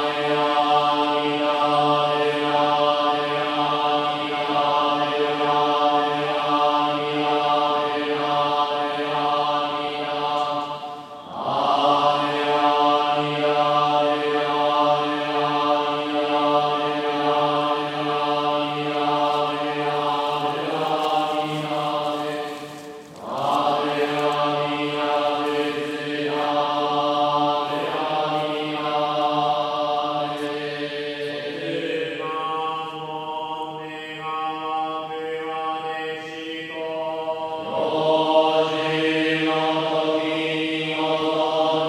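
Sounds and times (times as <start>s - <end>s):
male Buddhist monks chanting drone chant in ceremony in Tokyo Japan: 0.0s - 41.8s.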